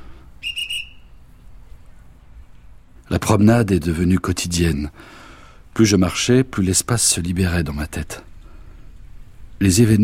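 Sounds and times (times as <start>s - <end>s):
low steady rumble: 0.0s - 10.0s
park guard's whistle blasts in the Jardin des Plantes at nightfall: 0.4s - 1.2s
speech: 3.2s - 5.2s, 5.8s - 8.3s, 9.6s - 10.0s.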